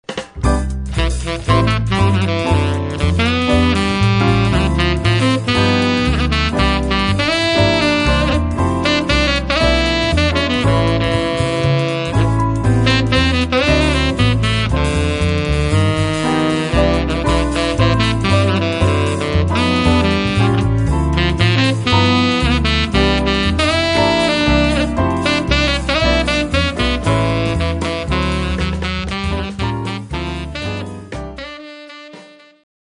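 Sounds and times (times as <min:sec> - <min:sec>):
piano quartet: 0:00.4 - 0:31.7.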